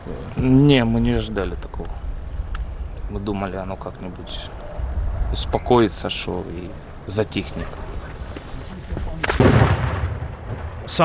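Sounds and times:
speech: 0.1 - 2.0, 3.1 - 4.6, 5.3 - 7.8, 10.9 - 11.0
artillery fire from a donated Paladin howitzer firing American rounds: 9.2 - 11.0.

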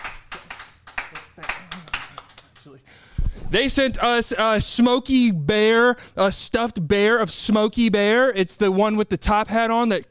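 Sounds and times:
round of applause: 0.0 - 2.8
speech: 2.7 - 10.0.

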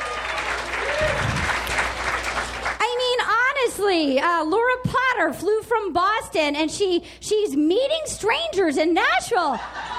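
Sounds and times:
audience applause: 0.0 - 2.8
speech: 3.8 - 9.9
laughter: 9.4 - 9.9.

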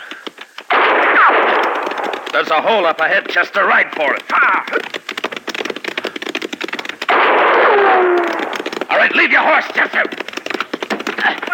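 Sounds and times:
ricochet whine: 0.6 - 5.0, 6.6 - 9.0
gunshots fired at riders: 0.7 - 4.6, 7.0 - 9.8
speech: 2.4 - 5.2, 9.0 - 10.3, 11.2 - 11.5.

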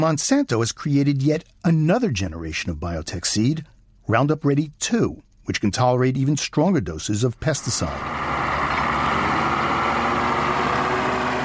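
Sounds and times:
speech: 0.0 - 8.4
road grader engine working: 7.6 - 11.4.

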